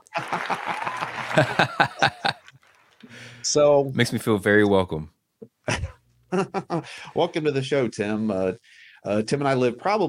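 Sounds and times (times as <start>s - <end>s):
people chuckling: 0.0s - 2.5s, 5.7s - 7.2s
applause: 0.0s - 3.3s
speech: 0.2s - 2.2s, 3.4s - 5.2s, 6.3s - 10.0s.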